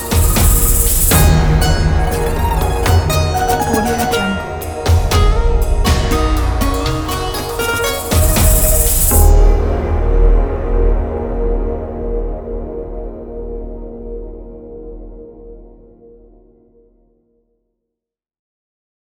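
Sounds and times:
asian cinematic music: 0:00.0 - 0:14.6.

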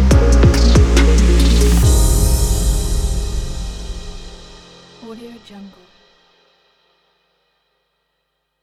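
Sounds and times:
epic technology music for strings: 0:00.0 - 0:05.8.

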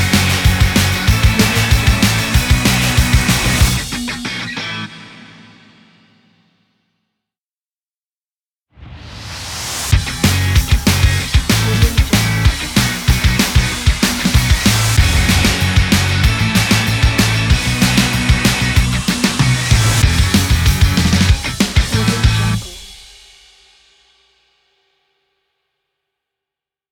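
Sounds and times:
energetic action indie sport rock: 0:00.0 - 0:05.3, 0:09.9 - 0:22.9.

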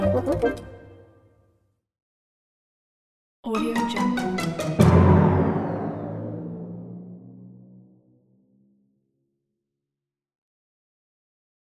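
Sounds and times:
musical interface sound: 0:03.7 - 0:07.8.

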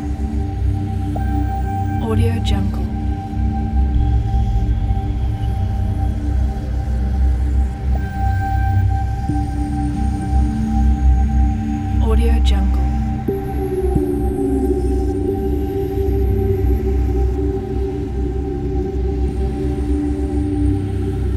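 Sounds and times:
abstracted ambient soundscape: 0:00.0 - 0:21.3.

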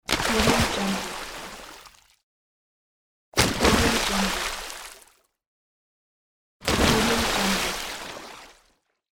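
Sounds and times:
water splashes: 0:00.0 - 0:02.2, 0:03.4 - 0:05.3, 0:06.6 - 0:08.8.

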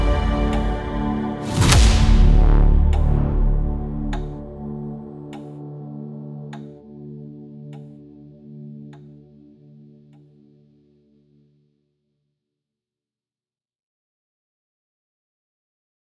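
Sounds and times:
epic intense horror cinematic music: 0:00.0 - 0:06.8.

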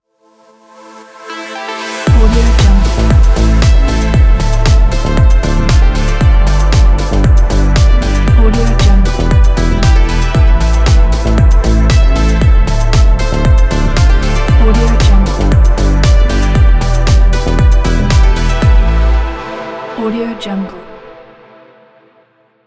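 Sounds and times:
deep house logo jingle: 0:01.9 - 0:19.3.

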